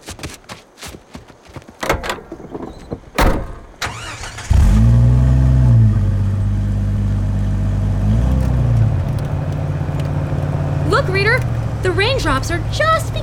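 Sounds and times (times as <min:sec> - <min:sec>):
jeep door thumps: 0:01.8 - 0:03.8
jeep engine starting and revving as it pulls away: 0:03.9 - 0:13.2.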